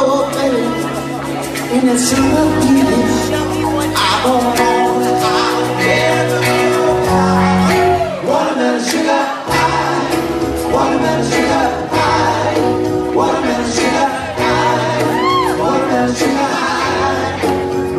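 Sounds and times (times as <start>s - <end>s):
loud live band music with bass: 0.0s - 17.9s
speech: 1.8s - 3.2s, 4.2s - 5.2s
club crowd cheering and whooping at a gig: 6.1s - 8.6s, 14.0s - 17.6s.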